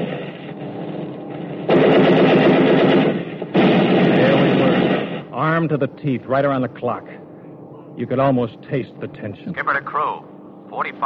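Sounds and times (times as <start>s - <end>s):
turret machine gun firing: 0.0s - 5.7s
speech: 5.6s - 7.2s, 8.0s - 11.0s.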